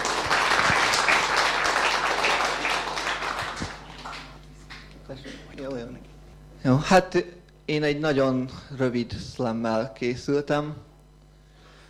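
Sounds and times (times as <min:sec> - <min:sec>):
audience applause: 0:00.0 - 0:04.9
speech: 0:06.6 - 0:10.9.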